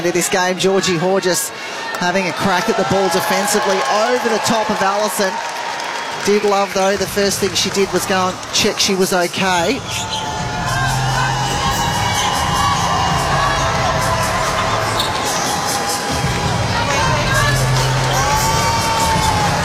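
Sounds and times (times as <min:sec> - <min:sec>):
speech: 0:00.0 - 0:05.5, 0:06.1 - 0:10.2
crowd cheering at the Hydro: 0:00.0 - 0:19.6.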